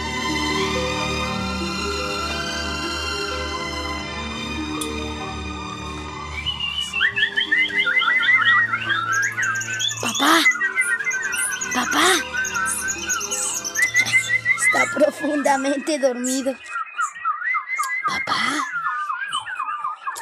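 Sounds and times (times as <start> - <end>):
steady tonal musical backdrop: 0.0 - 15.2
birds singing in the trees: 0.0 - 20.2
speech: 15.5 - 16.7.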